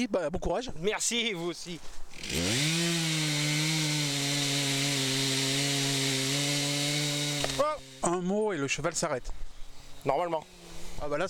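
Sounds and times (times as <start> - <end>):
speech: 0.0 - 3.0, 7.7 - 11.2
chainsaw running, cutting wood: 2.1 - 8.2, 10.3 - 11.2.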